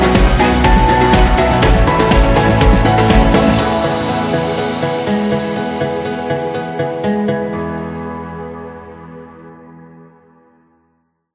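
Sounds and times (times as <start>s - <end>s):
African music: 0.0s - 8.5s.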